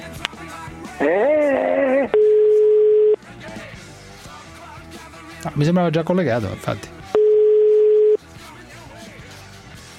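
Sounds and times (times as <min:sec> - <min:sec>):
speech: 0:01.0 - 0:01.4, 0:05.5 - 0:07.0
telephone ringback tone while calling someone: 0:02.1 - 0:03.2, 0:07.2 - 0:08.2.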